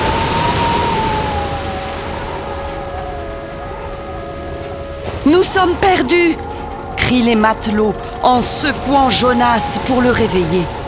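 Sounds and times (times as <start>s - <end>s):
gigantic waves crashing onto the deck of a boat: 0.0s - 10.8s
storm wind at sea howling with high whistling: 0.0s - 10.8s
speech: 5.3s - 10.8s.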